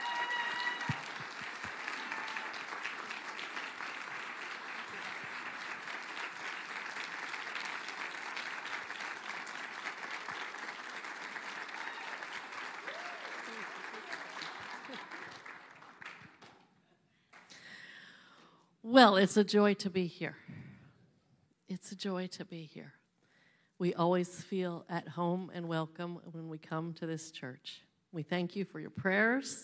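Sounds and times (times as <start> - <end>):
audience applause welcoming speakers: 0.0 - 16.6
speech: 18.9 - 20.4, 22.0 - 23.0, 23.8 - 29.6.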